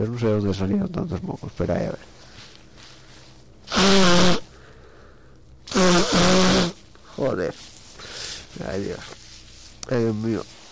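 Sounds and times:
speech: 0.0s - 2.2s, 9.9s - 10.7s
loud sneeze: 3.7s - 4.5s, 5.7s - 6.8s.

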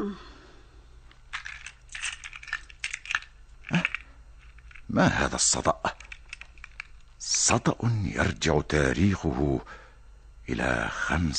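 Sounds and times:
cluster of keys jingling from key cabinet: 1.3s - 4.9s, 5.9s - 7.1s
speech: 5.0s - 6.0s, 7.5s - 9.8s, 10.5s - 11.3s.

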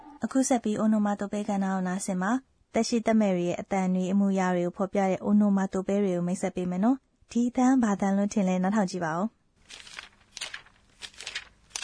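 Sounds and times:
speech: 0.3s - 9.8s
paper pages being turned: 9.6s - 11.8s.

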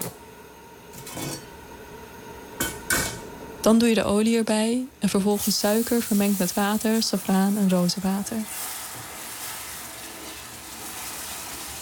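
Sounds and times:
speech: 3.6s - 8.8s
flour being stirred in a pan while making halwa: 5.4s - 11.7s.

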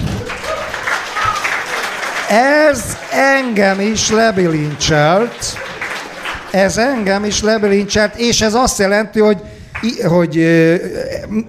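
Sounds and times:
applause: 0.0s - 8.6s, 9.7s - 10.0s
speech: 2.3s - 5.6s, 6.5s - 11.4s.

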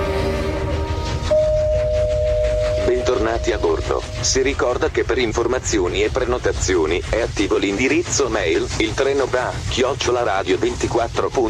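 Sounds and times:
train pulling away on the rails: 0.0s - 11.4s
thin whining tone: 0.7s - 5.0s
speech: 3.4s - 11.4s.

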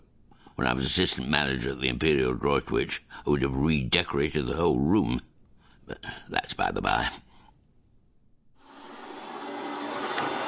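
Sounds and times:
speech: 0.6s - 5.3s, 5.9s - 7.2s
vacuum cleaner hoovering: 8.6s - 10.4s.

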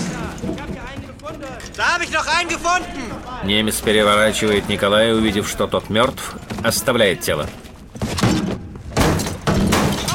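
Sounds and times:
speech: 1.4s - 7.6s
door being broken down by a soldier: 8.0s - 10.1s.

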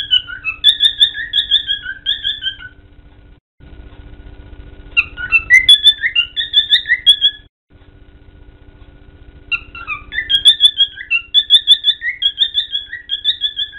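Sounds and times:
cockatiel chirping: 0.0s - 2.8s, 5.0s - 7.5s, 9.5s - 13.7s
low steady hum: 0.0s - 13.7s.

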